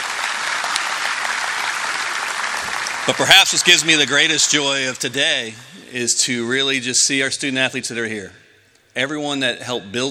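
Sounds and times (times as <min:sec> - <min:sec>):
round of applause: 0:00.0 - 0:04.2
speech: 0:03.1 - 0:08.4, 0:09.0 - 0:10.1.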